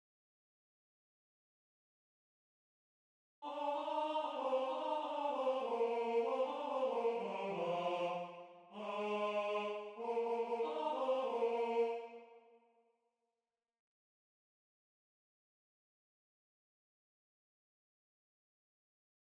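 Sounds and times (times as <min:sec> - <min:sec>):
tenor singing: 0:03.4 - 0:12.3.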